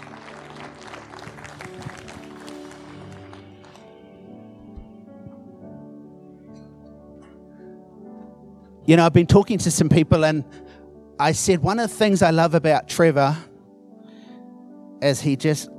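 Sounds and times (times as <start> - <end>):
audience applause: 0.0 - 4.0
speech: 8.9 - 13.5, 15.0 - 15.7.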